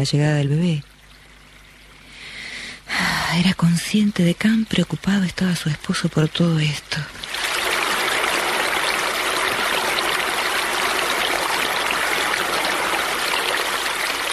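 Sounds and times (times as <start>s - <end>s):
speech: 0.0s - 0.9s, 3.3s - 7.2s
rain falling outside: 7.2s - 14.3s.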